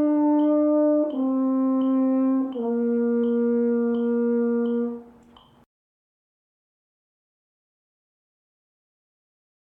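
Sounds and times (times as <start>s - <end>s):
horn playing a national anthem: 0.0s - 5.2s.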